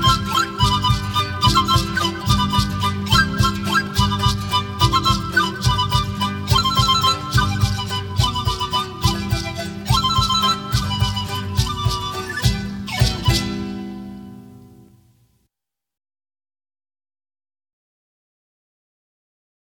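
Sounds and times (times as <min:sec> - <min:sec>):
zampoñas: 0:00.0 - 0:14.2
charango: 0:00.0 - 0:15.0.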